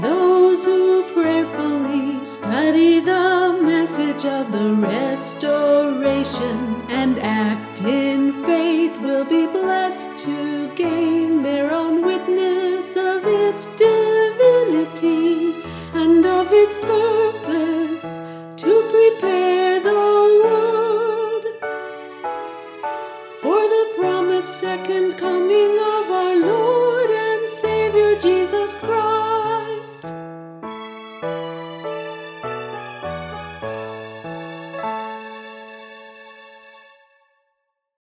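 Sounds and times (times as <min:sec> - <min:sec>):
vocals: 0:00.0 - 0:21.9, 0:23.3 - 0:30.3.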